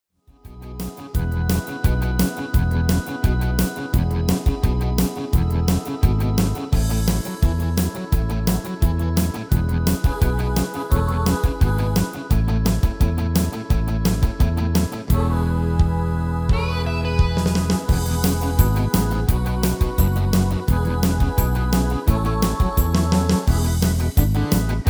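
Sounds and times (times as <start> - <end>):
MIDI music: 0.5 - 24.8.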